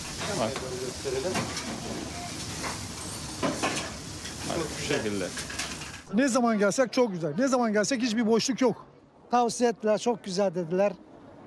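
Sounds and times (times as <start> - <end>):
Edirne-style liver sizzling in a frying pan at a busy restaurant in Edirne: 0.0 - 6.1
speech: 0.3 - 2.8, 4.6 - 11.1.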